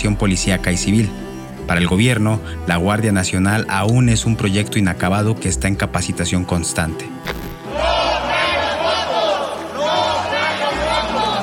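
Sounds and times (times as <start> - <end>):
speech: 0.0 - 7.9
legislators chanting and shouting in protest: 7.6 - 11.4.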